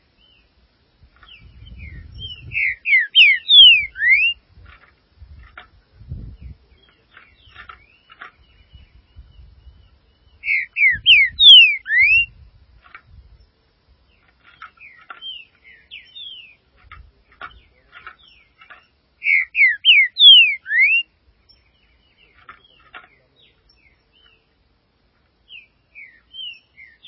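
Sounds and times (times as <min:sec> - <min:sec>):
Green-winged saltator whistling song: 0:01.2 - 0:04.4, 0:06.3 - 0:12.4, 0:14.2 - 0:16.6, 0:17.3 - 0:24.5, 0:25.5 - 0:27.0.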